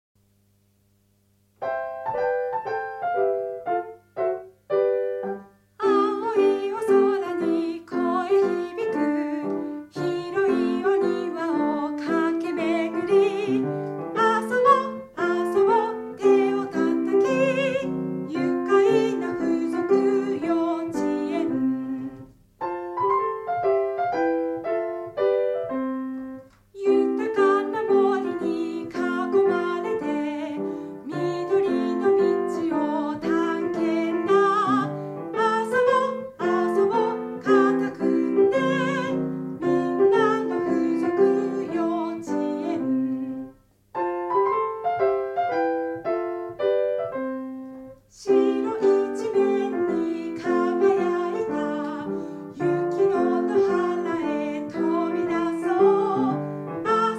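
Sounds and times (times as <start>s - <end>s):
enka song: 0.2s - 57.1s.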